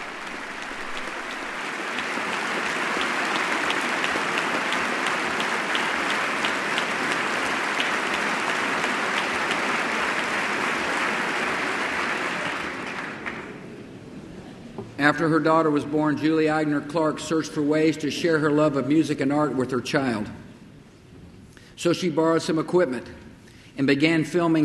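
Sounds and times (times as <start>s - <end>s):
hearty round of applause from the chamber: 0.0s - 13.7s
speech: 15.0s - 20.4s, 21.8s - 24.6s.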